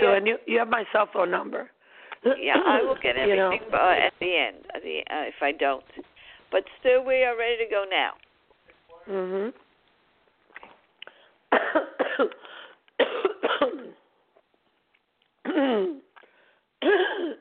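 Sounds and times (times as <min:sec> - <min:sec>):
speech: 0:00.2 - 0:08.2, 0:09.0 - 0:09.6, 0:11.5 - 0:13.6, 0:15.5 - 0:16.0
person coughing from allergies: 0:11.5 - 0:12.4, 0:13.0 - 0:14.0, 0:16.8 - 0:17.3.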